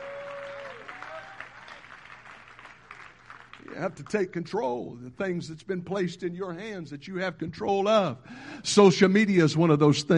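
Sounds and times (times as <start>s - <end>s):
many people clapping their hands: 0.0s - 4.3s
speech: 3.7s - 10.1s.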